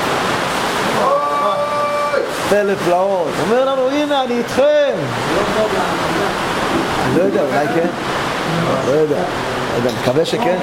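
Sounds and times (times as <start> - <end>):
rain falling: 0.0 - 10.6
speech: 2.5 - 10.6.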